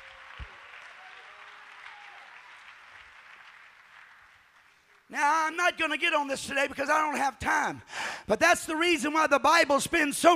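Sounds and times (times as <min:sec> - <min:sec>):
audience clapping hands: 0:00.0 - 0:05.6
speech: 0:05.1 - 0:10.3.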